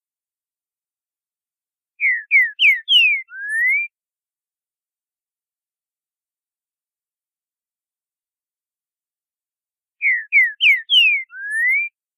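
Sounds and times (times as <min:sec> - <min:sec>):
green-winged saltator song of boiadeiro style: 0:02.0 - 0:03.9, 0:10.0 - 0:12.0.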